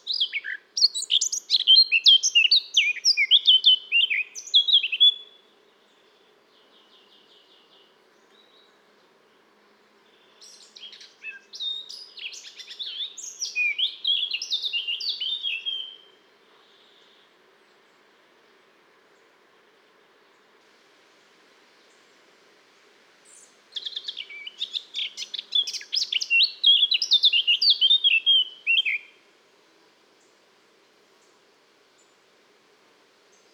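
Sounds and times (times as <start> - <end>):
Eurasian blackcap song: 0.0 - 18.1, 23.2 - 29.2.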